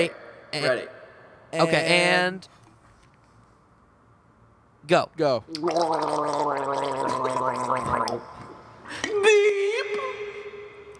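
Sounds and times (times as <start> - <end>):
speech: 0.0 - 2.6, 4.8 - 9.6
person gargling: 5.5 - 8.3.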